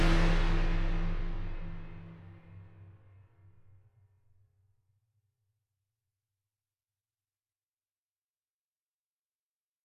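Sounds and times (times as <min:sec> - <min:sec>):
piano piece: 0:00.0 - 0:02.6.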